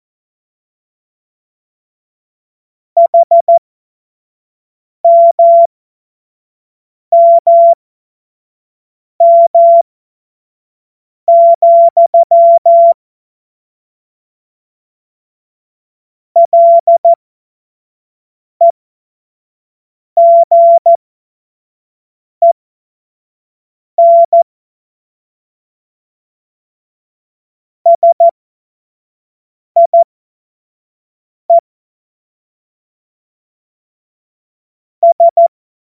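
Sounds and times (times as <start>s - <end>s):
CW Morse code beeps: 3.0s - 3.6s, 5.0s - 5.7s, 7.2s - 7.8s, 9.2s - 9.8s, 11.3s - 13.0s, 16.4s - 17.2s, 20.2s - 21.0s, 24.0s - 24.4s, 27.9s - 28.3s, 29.8s - 30.0s, 35.0s - 35.5s.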